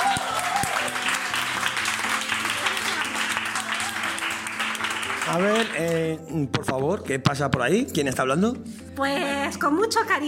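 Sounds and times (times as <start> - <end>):
applause: 0.0 - 6.2
speech: 5.3 - 10.2.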